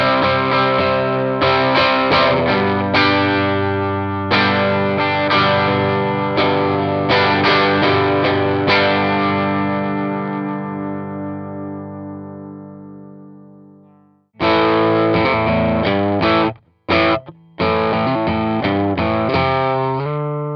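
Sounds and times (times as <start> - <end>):
distorted guitar amp on bridge pickup: 0.0 - 20.5.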